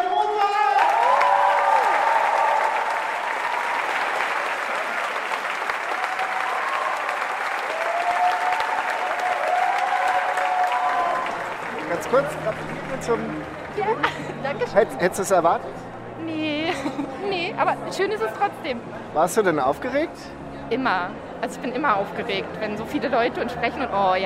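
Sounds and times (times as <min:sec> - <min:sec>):
crowd cheering: 0:00.1 - 0:14.1
audience applause: 0:00.4 - 0:14.4
speech: 0:12.1 - 0:24.2.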